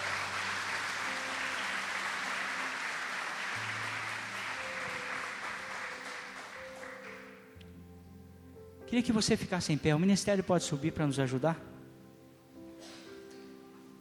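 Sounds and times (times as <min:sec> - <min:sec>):
audience applause: 0:00.0 - 0:07.4
speech: 0:08.9 - 0:11.7.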